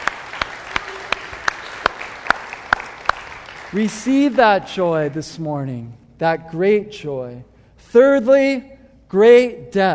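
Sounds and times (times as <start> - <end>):
audience clapping: 0.0 - 5.3
speech: 3.7 - 9.9.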